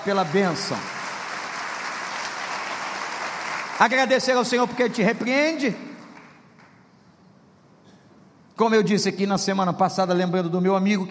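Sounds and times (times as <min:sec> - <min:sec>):
speech: 0:00.0 - 0:01.0, 0:03.8 - 0:05.9, 0:08.6 - 0:11.0
church congregation applause during a sermon: 0:00.0 - 0:06.8.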